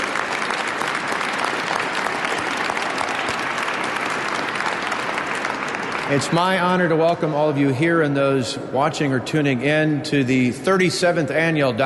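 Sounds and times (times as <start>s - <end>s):
audience applause: 0.0s - 7.3s
speech: 6.1s - 11.8s.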